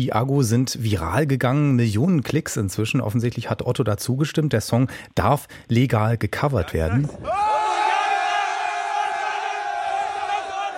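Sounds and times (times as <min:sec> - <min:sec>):
speech: 0:00.0 - 0:07.5
crowd cheering and shouting: 0:07.0 - 0:10.7.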